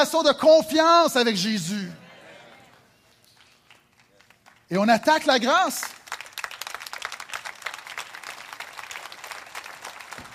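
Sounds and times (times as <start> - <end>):
speech: 0.0 - 2.0, 4.7 - 6.0
crowd applauding: 2.5 - 10.3.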